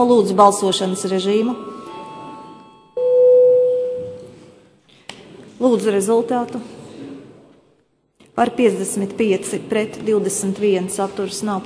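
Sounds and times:
speech: 0.0s - 1.8s, 5.6s - 6.8s, 8.4s - 11.6s
parliamentary voting bell ringing: 0.0s - 4.4s.

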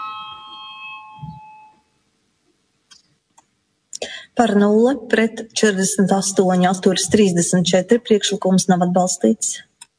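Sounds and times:
electronic chime rung in a parliament to call members to a vote: 0.0s - 2.0s
speech: 4.4s - 9.7s.

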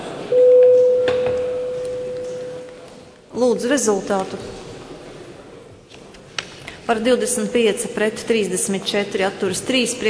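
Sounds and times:
faint murmur: 0.0s - 10.0s
parliament voting bell: 0.3s - 2.9s
speech: 3.4s - 4.6s, 6.9s - 10.0s.

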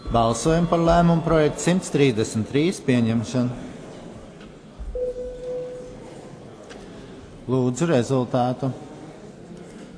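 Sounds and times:
speech: 0.1s - 3.7s, 7.5s - 8.9s
vote-signalling bell in a parliament chamber: 5.0s - 6.0s.

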